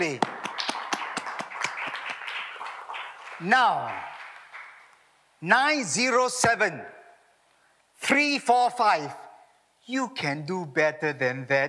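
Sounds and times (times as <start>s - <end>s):
speech: 0.0s - 0.3s, 3.4s - 4.1s, 5.4s - 6.9s, 8.1s - 9.2s, 9.9s - 11.6s
audience applause: 0.0s - 5.0s.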